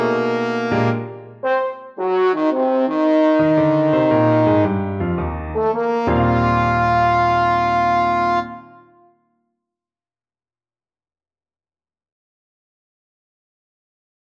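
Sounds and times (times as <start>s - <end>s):
fast trombone playing: 0.0s - 9.0s.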